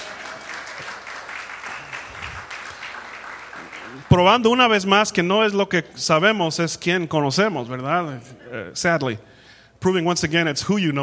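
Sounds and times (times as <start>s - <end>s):
audience applause: 0.0s - 4.2s
speech: 3.9s - 11.0s.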